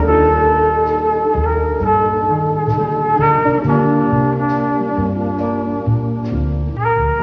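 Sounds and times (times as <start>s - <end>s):
jazz horns loop: 0.0s - 7.2s.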